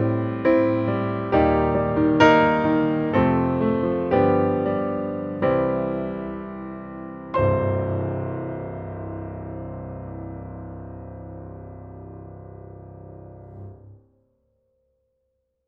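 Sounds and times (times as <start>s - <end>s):
Steinway D grand piano dry: 0.0s - 14.1s.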